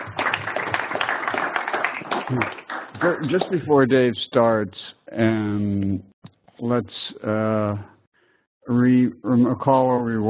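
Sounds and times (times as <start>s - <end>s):
audience clapping: 0.0s - 3.7s
speech: 2.3s - 7.9s, 8.7s - 10.2s.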